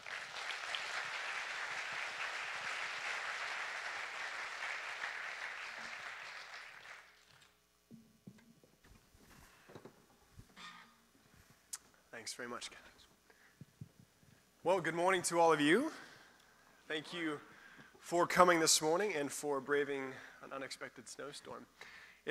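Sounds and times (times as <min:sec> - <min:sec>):
audience applause welcoming two speakers: 0:00.0 - 0:07.4
speech: 0:12.2 - 0:12.9, 0:14.6 - 0:16.0, 0:16.9 - 0:22.2.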